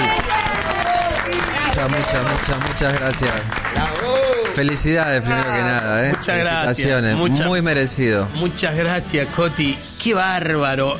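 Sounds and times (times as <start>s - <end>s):
audience applause: 0.0s - 6.8s
speech: 1.8s - 10.9s.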